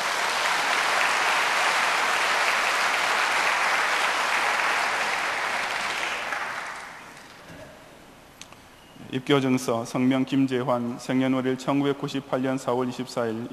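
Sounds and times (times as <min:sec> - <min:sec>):
audience applause: 0:00.0 - 0:07.4
speech: 0:09.1 - 0:13.5.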